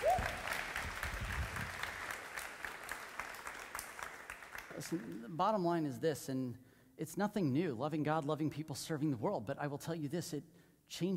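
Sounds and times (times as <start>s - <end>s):
audience round of applause: 0.0s - 5.2s
speech: 4.8s - 11.1s.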